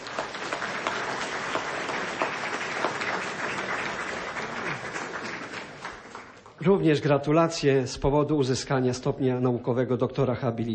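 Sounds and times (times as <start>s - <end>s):
audience applause: 0.0s - 6.7s
speech: 6.6s - 10.7s.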